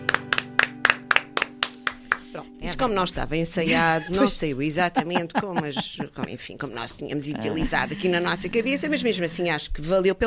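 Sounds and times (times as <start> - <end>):
hands clapping after a birthday song: 0.0 - 2.4
speech: 2.4 - 10.2
laughter: 3.6 - 9.5.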